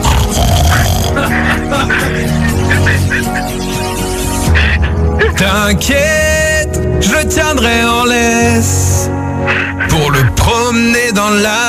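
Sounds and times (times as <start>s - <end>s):
person imitating a pig's grunting: 0.0s - 3.1s
laughter: 0.7s - 5.3s
speech: 5.4s - 6.4s, 7.0s - 11.6s.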